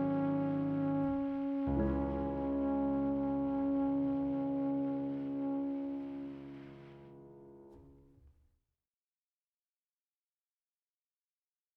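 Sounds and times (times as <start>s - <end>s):
interlude in C-sharp minor: 0.0s - 7.8s.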